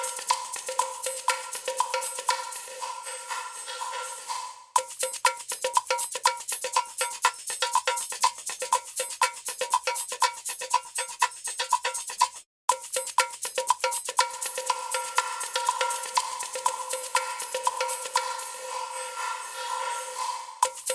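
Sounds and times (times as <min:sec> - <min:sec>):
percussion with reverb: 0:00.0 - 0:20.9.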